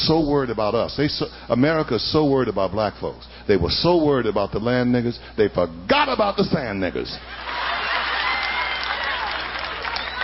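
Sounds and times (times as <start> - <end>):
speech: 0.0 - 7.8
audience clapping: 7.4 - 10.2.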